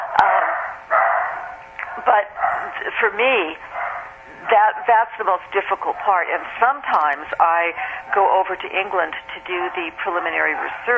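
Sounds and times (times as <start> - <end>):
dogs barking: 0.0 - 3.0, 3.6 - 6.5, 9.5 - 10.9
speech: 2.0 - 3.7, 4.5 - 10.9.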